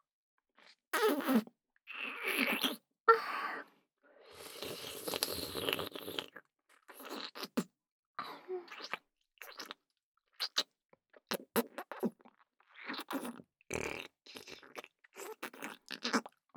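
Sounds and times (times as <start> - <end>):
wet mouth sounds: 1.0 - 1.4, 2.0 - 2.8, 4.4 - 7.7, 8.7 - 9.8, 10.4 - 10.7, 11.3 - 16.4.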